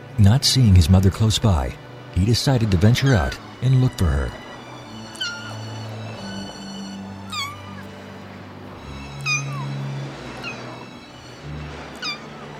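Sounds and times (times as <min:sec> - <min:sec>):
speech: 0:00.2 - 0:04.4
kitten meowing: 0:04.9 - 0:07.9, 0:08.9 - 0:10.8, 0:12.0 - 0:12.3.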